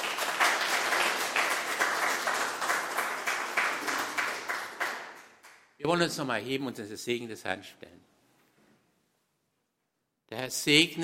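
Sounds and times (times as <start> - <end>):
audience applause: 0.0 - 5.6
speech: 5.8 - 8.1, 10.4 - 11.0.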